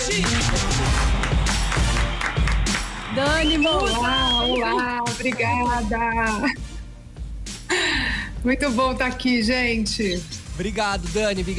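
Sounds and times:
crowd applauding: 0.0 - 5.8
speech: 0.1 - 1.1, 3.2 - 6.7, 8.4 - 11.5.

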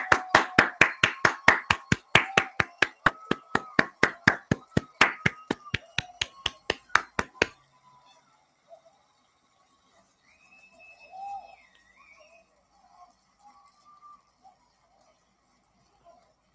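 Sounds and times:
clapping: 0.0 - 7.6.

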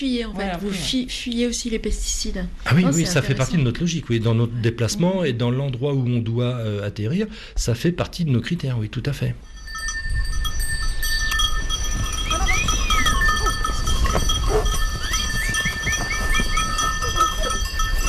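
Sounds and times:
speech: 0.0 - 9.5
livestock bells and cowbells jingling: 9.4 - 18.0.

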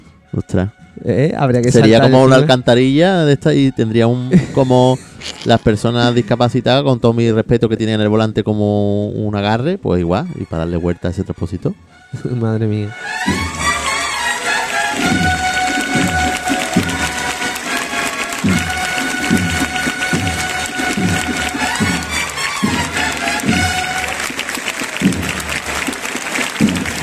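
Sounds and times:
speech: 0.3 - 13.6
laughter: 4.1 - 6.6
crowd ovation at end of march: 13.2 - 27.0.

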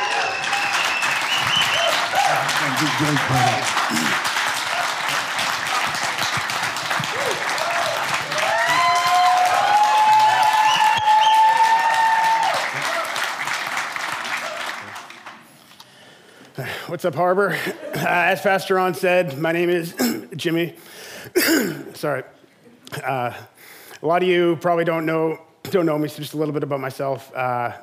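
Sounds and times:
church audience applauding to welcome a speaker: 0.0 - 15.6
speech: 2.8 - 4.3, 16.9 - 20.8, 22.0 - 22.4, 23.0 - 27.8.

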